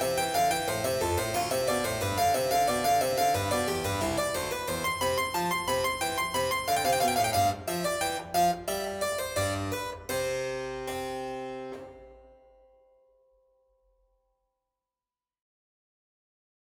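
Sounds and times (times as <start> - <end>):
two-voice keyboard piece: 0.0 - 12.5.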